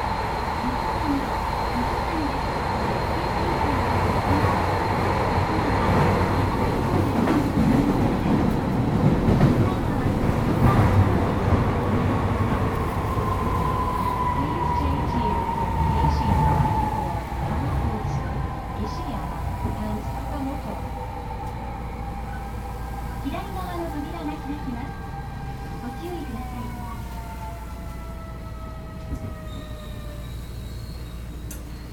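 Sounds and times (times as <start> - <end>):
Kyoto Municipal Subway Tozai Line 50 series train inverter sound: 0.0 - 31.9.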